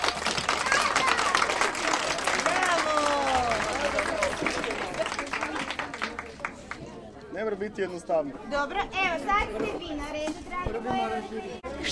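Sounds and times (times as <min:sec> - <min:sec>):
applause: 0:00.0 - 0:06.9
speech: 0:07.5 - 0:11.9.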